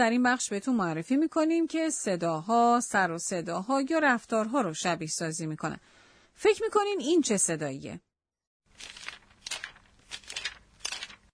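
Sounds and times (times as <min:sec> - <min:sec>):
speech: 0:00.0 - 0:08.1
book pages being turned: 0:08.7 - 0:11.3.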